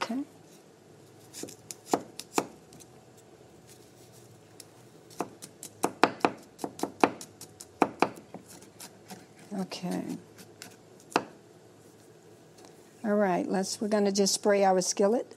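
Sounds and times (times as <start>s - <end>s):
chopping food with a knife: 1.3s - 2.6s, 5.1s - 11.4s
speech: 1.4s - 1.6s, 9.8s - 10.3s, 13.1s - 15.3s.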